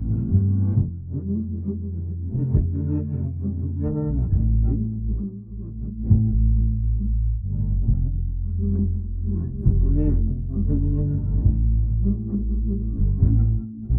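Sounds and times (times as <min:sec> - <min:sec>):
bass: 0:00.0 - 0:13.9.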